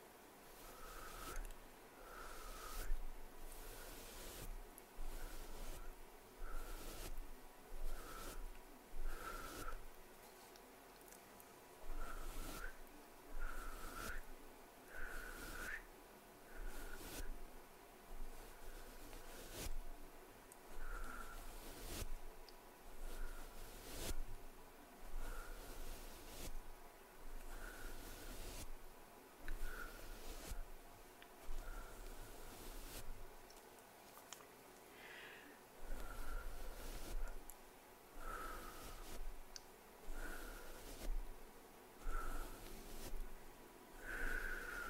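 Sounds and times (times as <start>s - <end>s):
hand movements rustling and brushing: 0.0s - 44.8s
low steady hum: 0.0s - 44.8s
wet mouth clicks and smacks: 33.5s - 34.9s.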